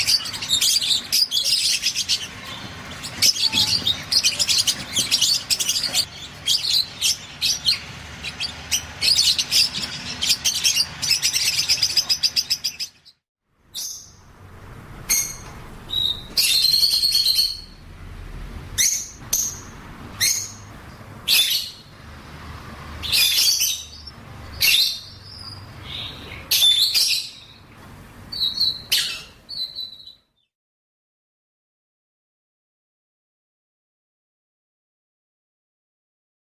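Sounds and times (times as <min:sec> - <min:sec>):
Fischer's lovebird chatter: 0:00.0 - 0:13.2, 0:15.1 - 0:17.8, 0:18.8 - 0:21.9, 0:23.0 - 0:27.7, 0:28.3 - 0:30.2.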